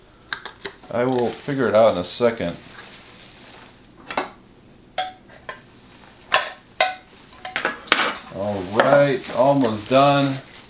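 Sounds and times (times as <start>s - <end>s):
unpacking parts from small plastic bags: 0.6s - 3.9s, 7.0s - 10.6s
speech: 0.9s - 2.7s, 9.2s - 10.5s.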